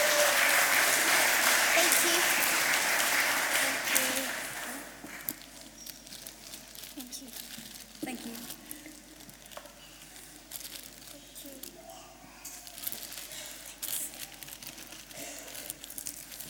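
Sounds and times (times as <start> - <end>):
murmuring voices: 0.0 - 5.2
crowd applause for children: 0.0 - 5.3.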